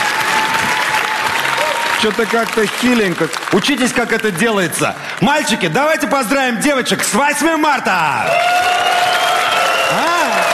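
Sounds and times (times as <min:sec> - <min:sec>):
men in an audience applauding: 0:00.0 - 0:06.0, 0:08.1 - 0:10.5
speech: 0:02.0 - 0:08.9, 0:09.9 - 0:10.2.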